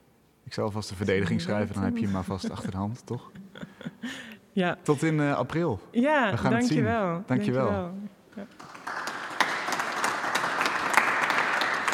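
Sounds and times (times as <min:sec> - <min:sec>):
speech: 0:00.5 - 0:03.4, 0:04.0 - 0:08.7
laughter: 0:02.0 - 0:04.3
audience applause in a church: 0:08.5 - 0:11.9.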